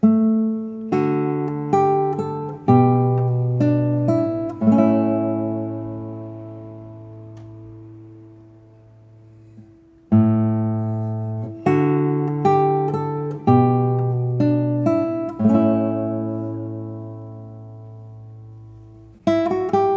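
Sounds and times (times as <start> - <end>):
guitar ensemble playing tutti: 0.0 - 19.9.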